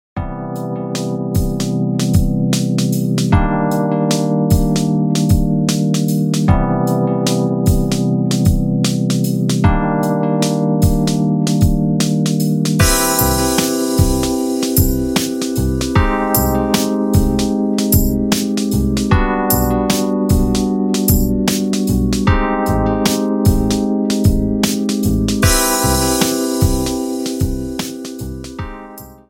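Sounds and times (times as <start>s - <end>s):
music: 0.2s - 29.2s.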